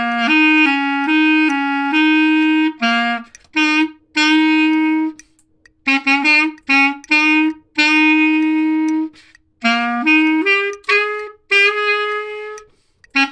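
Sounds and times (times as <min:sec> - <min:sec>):
boogie bass melody: 0:00.0 - 0:13.3.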